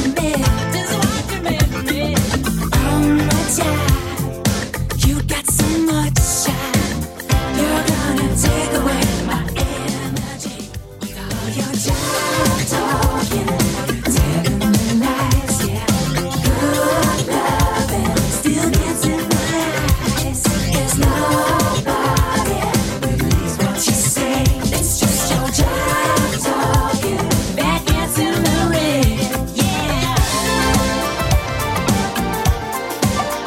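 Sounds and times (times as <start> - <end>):
80s Redrum drum machine beat: 0.0 - 33.4.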